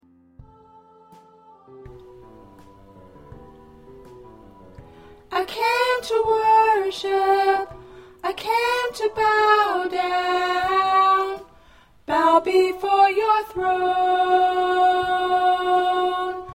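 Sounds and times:
alto choir part singing: 0.4s - 3.6s, 5.3s - 16.5s.

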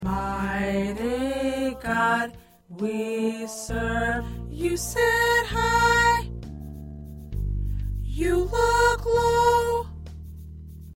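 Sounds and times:
soprano singing: 0.0s - 6.3s, 8.1s - 10.0s.

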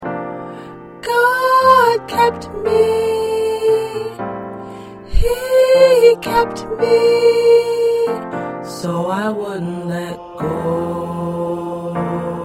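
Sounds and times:
soprano singing choir parts: 0.9s - 4.4s, 5.0s - 12.4s.

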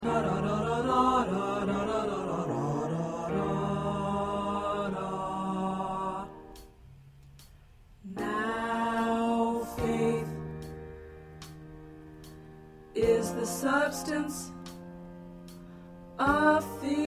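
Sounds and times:
tenor choir part singing: 0.0s - 6.6s, 8.1s - 10.7s, 13.0s - 14.5s, 16.2s - 17.0s.

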